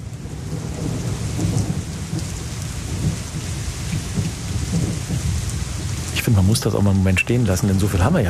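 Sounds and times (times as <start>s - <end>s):
warm summer rain: 0.0s - 8.2s
speech: 6.3s - 8.2s.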